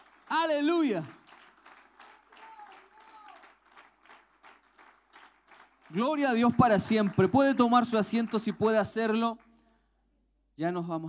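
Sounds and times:
audience applause: 0.0s - 8.9s
speech: 0.4s - 1.2s, 5.9s - 9.4s, 10.6s - 11.0s.

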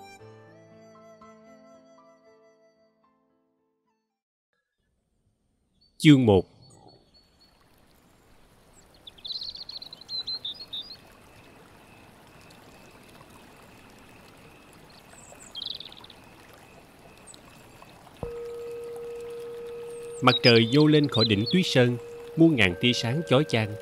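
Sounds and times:
birds chirping at dawn: 5.8s - 23.8s
speech: 6.0s - 6.5s, 20.2s - 23.8s.

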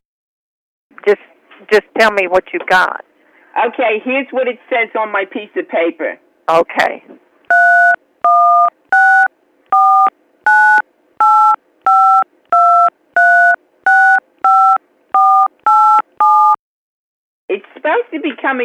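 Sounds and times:
speech: 1.0s - 7.2s, 17.9s - 18.6s
touch-tone telephone dialing beeps: 7.5s - 16.6s.

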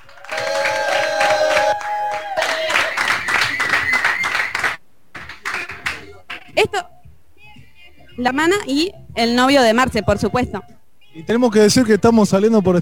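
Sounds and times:
cheering and whoops: 0.0s - 4.8s
audience applause: 0.0s - 6.5s
speech: 8.2s - 12.8s.

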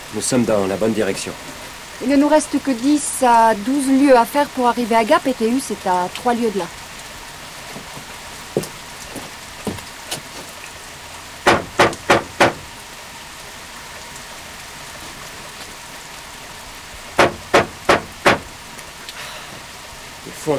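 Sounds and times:
steady rain: 0.0s - 20.5s
speech: 0.1s - 6.8s
someone forcing open a door at a night shelter: 11.5s - 12.7s, 17.2s - 18.5s.

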